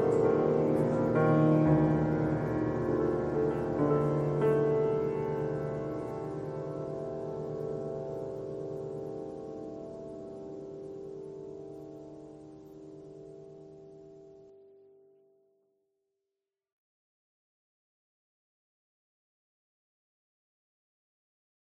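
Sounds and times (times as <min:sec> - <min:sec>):
piano string noise: 0:00.0 - 0:14.5.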